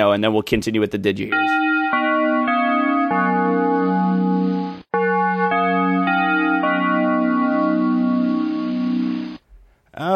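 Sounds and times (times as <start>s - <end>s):
speech: 0.0s - 1.6s
bell ring: 1.3s - 9.4s.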